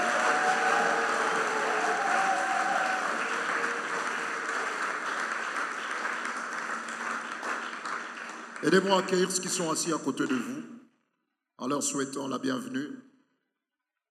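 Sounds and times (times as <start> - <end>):
church congregation applauding: 0.0 - 10.5
speech: 8.6 - 10.8, 11.6 - 13.0.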